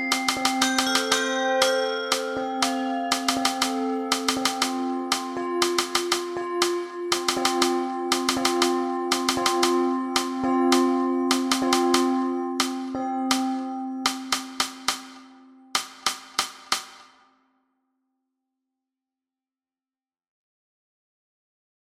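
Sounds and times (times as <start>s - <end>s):
English snare drum for bells: 0.1s - 17.2s.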